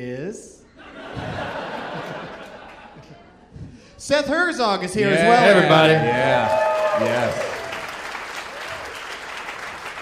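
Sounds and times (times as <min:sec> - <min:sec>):
speech: 0:00.0 - 0:01.3, 0:04.0 - 0:07.5
laughter: 0:00.8 - 0:03.4, 0:05.0 - 0:06.5
audience applause: 0:05.2 - 0:10.0.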